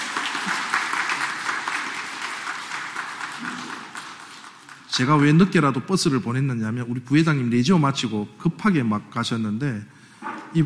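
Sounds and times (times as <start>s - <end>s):
audience applause welcoming arriving elderly guests: 0.0s - 5.4s
speech: 4.9s - 10.6s.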